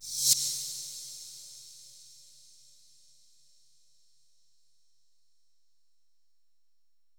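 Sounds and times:
reverse cymbal crash: 0.0 - 2.1.

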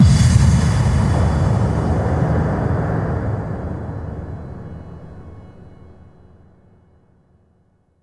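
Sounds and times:
explosions: 0.0 - 5.5
impact hits: 0.0 - 6.1.

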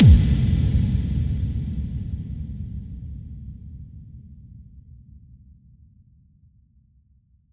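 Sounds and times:
bass drum kick with reverb: 0.0 - 2.6.

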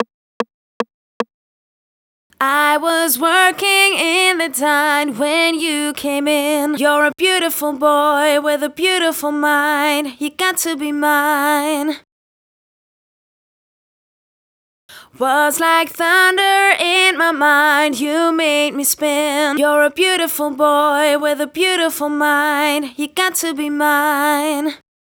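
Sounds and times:
boy singing a verse: 2.4 - 12.0, 15.0 - 24.8.

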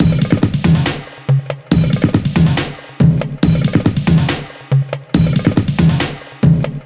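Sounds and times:
dubstep drum loop: 0.0 - 6.8.

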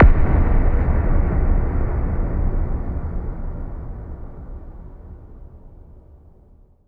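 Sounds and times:
impact hits: 0.0 - 4.6
explosions: 0.0 - 5.5.

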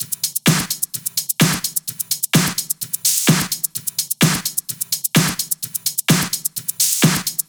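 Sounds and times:
drum kit at 128 BPM: 0.0 - 7.4.

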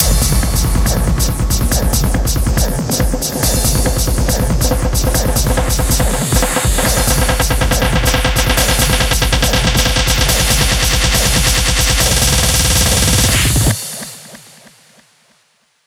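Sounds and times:
hands up trance fills at 140 BPM: 0.0 - 14.7.

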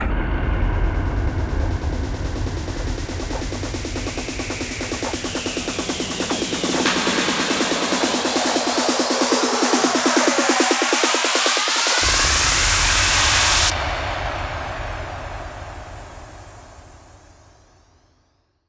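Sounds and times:
hands up and trance fills: 0.0 - 14.8.

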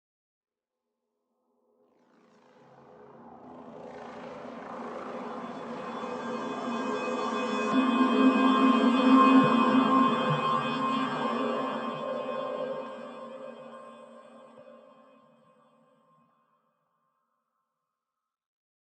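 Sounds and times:
synth pad: 2.0 - 15.6.

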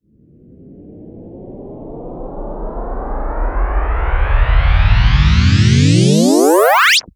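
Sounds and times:
uplifter riser: 3.3 - 7.1.

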